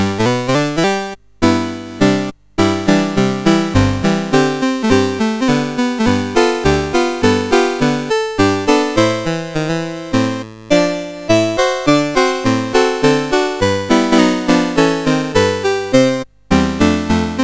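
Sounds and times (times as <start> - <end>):
song played on a CSG8580R5 sound chip: 0.0 - 17.4.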